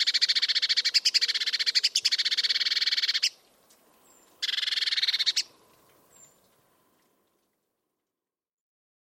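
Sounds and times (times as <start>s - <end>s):
Eurasian blue tit giving a harsh buzzy churr: 0.0s - 3.4s, 4.4s - 5.5s.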